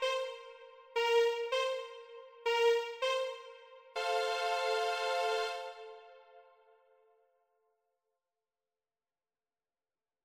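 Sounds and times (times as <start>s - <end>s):
violins playing: 0.0s - 6.2s.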